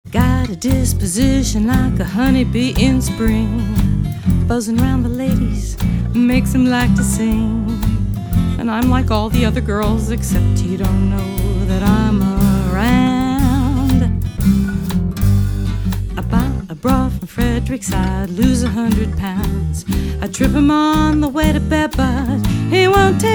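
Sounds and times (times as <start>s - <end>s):
blues song: 0.0s - 23.3s.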